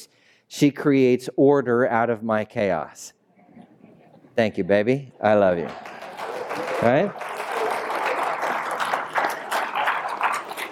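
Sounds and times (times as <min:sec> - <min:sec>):
speech: 0:00.0 - 0:03.7, 0:04.4 - 0:05.9, 0:06.8 - 0:07.3
applause: 0:05.6 - 0:10.6.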